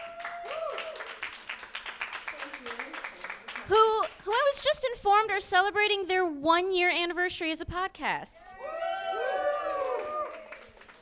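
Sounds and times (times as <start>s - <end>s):
people whooping and calling out: 0.0s - 1.2s, 8.5s - 10.8s
audience applause: 0.0s - 3.7s, 8.6s - 10.9s
speech: 4.6s - 8.4s.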